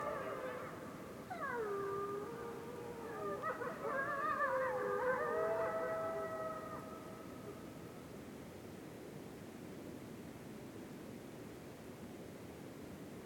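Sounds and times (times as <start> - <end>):
wolves howling in a winter forest at night: 0.0 - 7.2.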